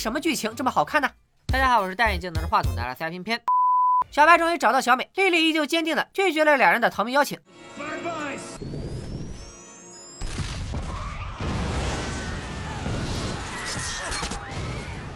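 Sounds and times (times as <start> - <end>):
speech: 0.0 - 3.5, 4.1 - 7.8
movie explosion destroying a shopping mall: 10.2 - 15.1.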